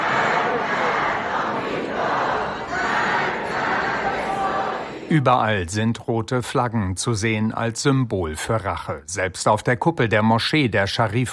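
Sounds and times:
crowd chanting slogans in crowded subway station: 0:00.0 - 0:05.2
speech: 0:05.1 - 0:11.3.

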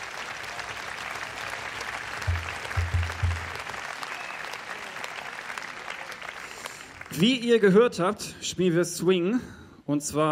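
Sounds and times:
festival audience applause for the Jazzbüro team: 0:00.0 - 0:07.2
low thumps: 0:02.3 - 0:03.6
speech: 0:07.2 - 0:10.2.

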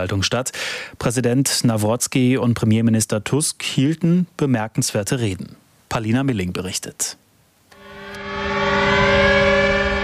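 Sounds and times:
speech: 0:00.0 - 0:07.2
civil defense sirens wailing: 0:07.8 - 0:10.0.

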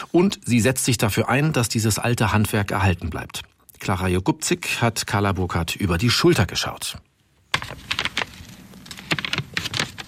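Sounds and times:
speech: 0:00.1 - 0:07.8
stiff crackly pages of an old book being turned: 0:07.5 - 0:10.0.

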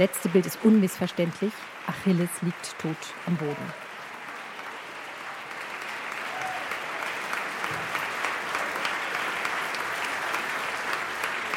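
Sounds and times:
speech: 0:00.0 - 0:03.8
premiere audience applause: 0:00.0 - 0:11.5.

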